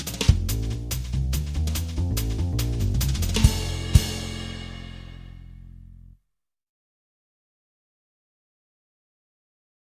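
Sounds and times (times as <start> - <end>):
jazz drum brushes loop: 0.0 - 5.7.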